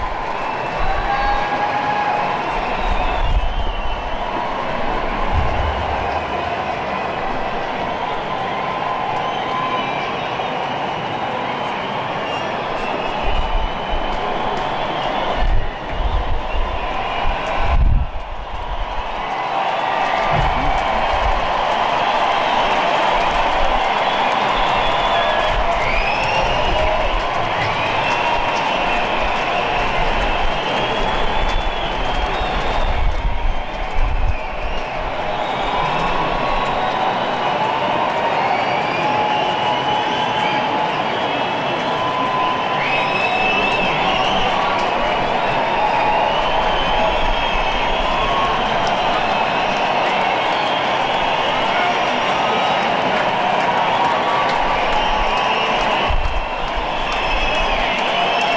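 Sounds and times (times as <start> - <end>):
crowd: 0.0 - 58.5.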